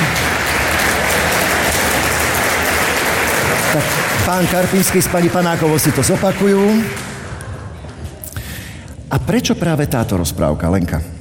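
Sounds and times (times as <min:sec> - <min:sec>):
audience applause: 0:00.0 - 0:07.8
speech: 0:03.8 - 0:07.1, 0:09.2 - 0:11.1.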